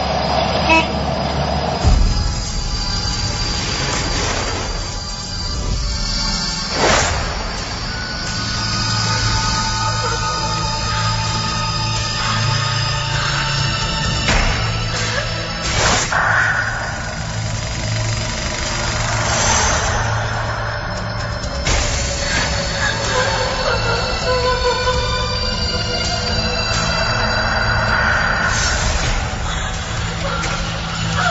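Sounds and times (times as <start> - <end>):
angkot minibus driving toward the hospital: 0.0 - 31.2.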